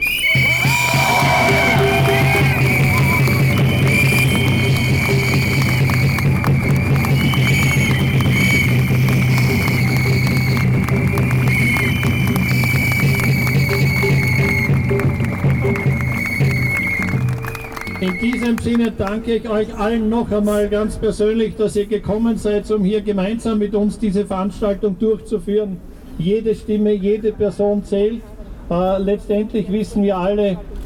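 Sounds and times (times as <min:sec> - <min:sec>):
audience applause: 0:00.4 - 0:19.2
speech: 0:18.2 - 0:30.7.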